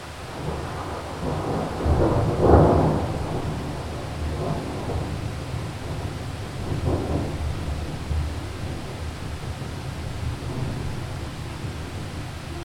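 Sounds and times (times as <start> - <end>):
heavy rain: 0.0 - 12.6
mountain thunder roll: 0.0 - 12.6.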